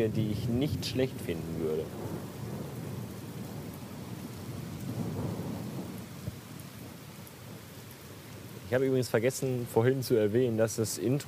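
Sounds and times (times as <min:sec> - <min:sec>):
speech: 0:00.0 - 0:02.4, 0:08.7 - 0:11.2
low rolling rumble of thunder: 0:00.0 - 0:07.7
heavy rain in thunderstorm: 0:00.0 - 0:11.2.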